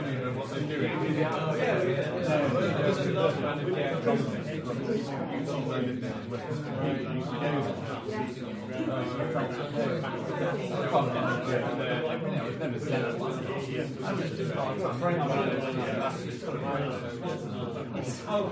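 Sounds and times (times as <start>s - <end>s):
walla of 15 to 20 people at a networking event: 0.0s - 18.5s.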